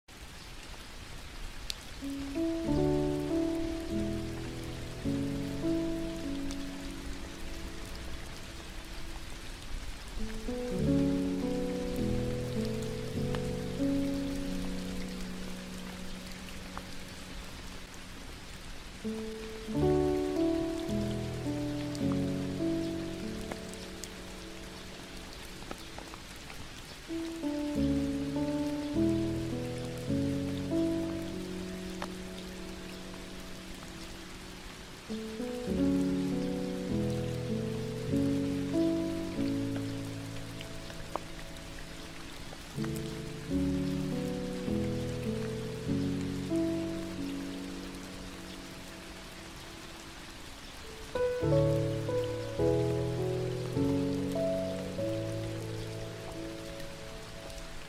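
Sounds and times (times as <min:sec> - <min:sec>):
rain: 0:00.0 - 0:57.8
music: 0:02.0 - 0:18.1, 0:19.0 - 0:57.8.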